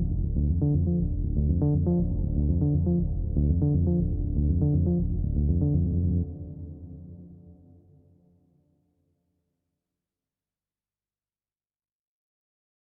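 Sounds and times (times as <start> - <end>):
solo synth: 0.0 - 7.3.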